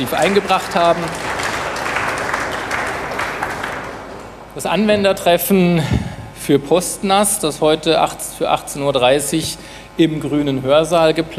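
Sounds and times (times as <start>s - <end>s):
speech: 0.0s - 1.4s, 4.6s - 11.3s
audience applause: 0.0s - 4.4s.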